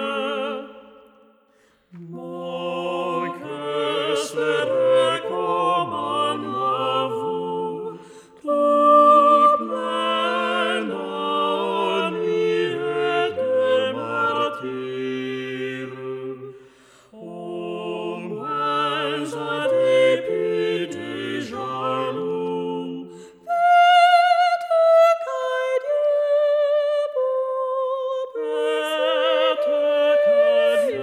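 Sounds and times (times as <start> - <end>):
choir singing without the alto part: 0.0 - 31.0.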